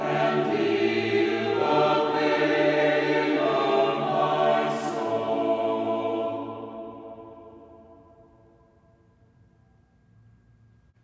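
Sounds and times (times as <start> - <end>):
liturgical troparia chant: 0.0 - 8.5.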